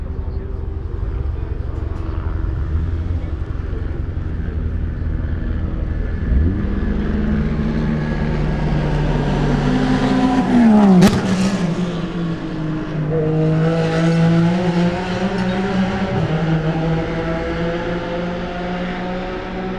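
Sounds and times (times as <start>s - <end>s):
Corvette and Audi cars before Tertre Rouge: 0.0s - 19.7s.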